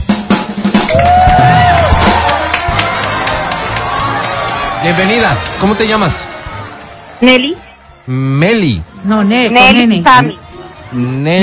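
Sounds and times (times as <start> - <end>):
audience applause: 0.9 - 7.9
speech: 4.8 - 6.3, 7.2 - 11.4.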